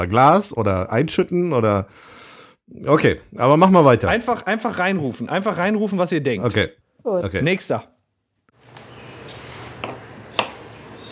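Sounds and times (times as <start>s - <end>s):
speech: 0.0s - 7.9s
chopping onions with a knife: 9.8s - 11.1s.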